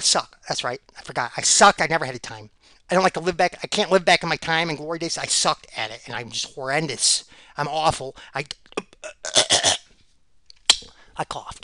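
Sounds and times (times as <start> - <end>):
speech: 0.0 - 9.4, 11.2 - 11.6
person coughing: 9.2 - 9.8.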